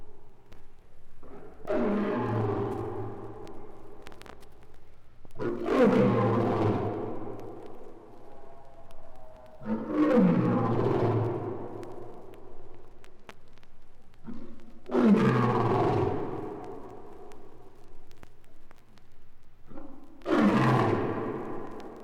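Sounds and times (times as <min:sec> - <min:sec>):
lion roaring: 0:01.2 - 0:03.7, 0:05.4 - 0:07.6, 0:08.4 - 0:12.2, 0:14.2 - 0:17.0, 0:19.7 - 0:22.0.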